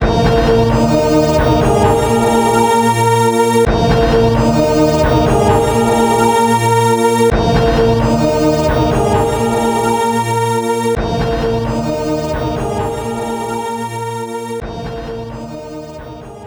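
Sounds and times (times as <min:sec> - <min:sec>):
battle victory music: 0:00.0 - 0:16.4.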